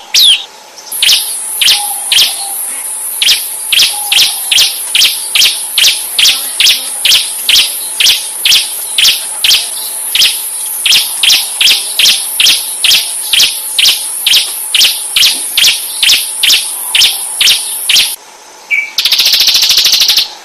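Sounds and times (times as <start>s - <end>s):
Ciblek bird singing: 0.0s - 20.4s.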